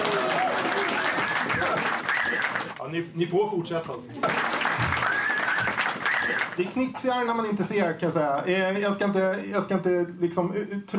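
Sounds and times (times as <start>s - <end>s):
crowd applauding a stand-up comedian in a packed basement venue in central Malmö: 0.0s - 2.8s, 4.2s - 6.6s
speech: 2.9s - 4.9s, 6.6s - 10.9s.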